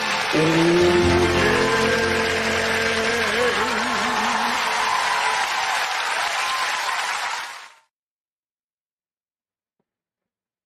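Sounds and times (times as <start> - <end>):
crowd clapping: 0.0 - 7.9.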